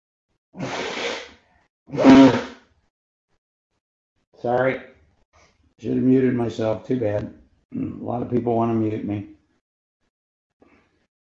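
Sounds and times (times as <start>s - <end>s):
person blowing their nose: 0.6s - 2.6s
speech: 1.9s - 2.2s, 4.4s - 4.9s, 5.8s - 9.4s.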